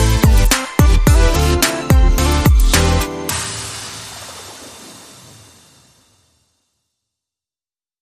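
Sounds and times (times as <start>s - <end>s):
trap beat: 0.0s - 3.1s.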